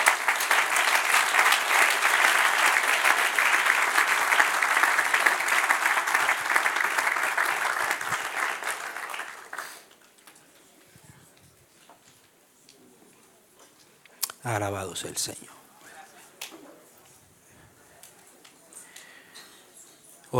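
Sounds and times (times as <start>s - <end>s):
audience applauding: 0.0s - 10.2s
speech: 14.6s - 15.5s.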